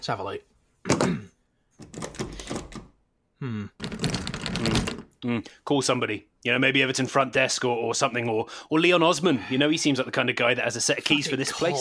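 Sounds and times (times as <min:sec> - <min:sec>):
speech: 0:00.0 - 0:01.2, 0:05.2 - 0:11.8
locked door rattling: 0:03.8 - 0:05.0.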